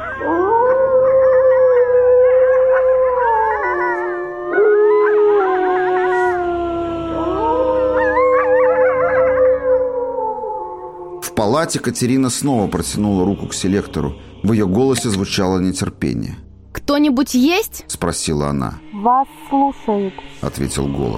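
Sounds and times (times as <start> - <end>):
several dogs howling in chorus: 0.0 - 14.1
speech: 11.7 - 21.1.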